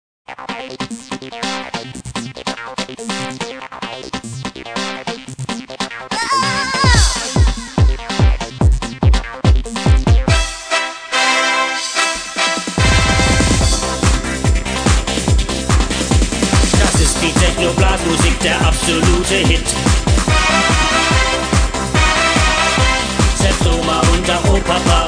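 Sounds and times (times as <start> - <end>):
techno brass music: 6.3 - 25.0.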